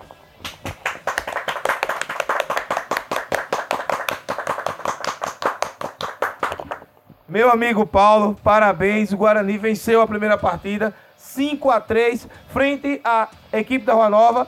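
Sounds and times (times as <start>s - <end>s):
round of applause: 0.4s - 6.8s
speech: 7.3s - 14.4s.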